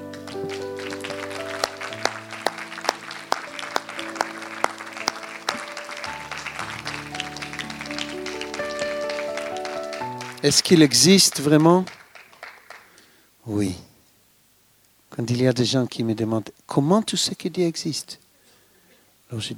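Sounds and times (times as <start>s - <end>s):
audience applauding: 0.0s - 13.2s
speech: 10.4s - 12.0s, 13.5s - 13.9s, 15.2s - 18.2s, 19.3s - 19.5s.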